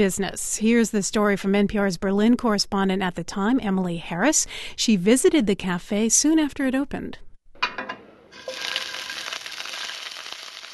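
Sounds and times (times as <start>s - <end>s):
speech: 0.0s - 7.3s
king prawns frying in the kitchen of Sehnsucht restaurant in Berlin: 8.4s - 10.7s.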